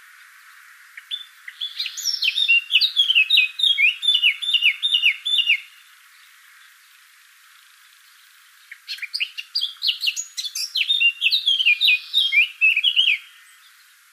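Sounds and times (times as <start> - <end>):
Eurasian blackcap Sylvia atricapilla singing chattering phrases: 1.0 - 5.8, 8.6 - 13.8.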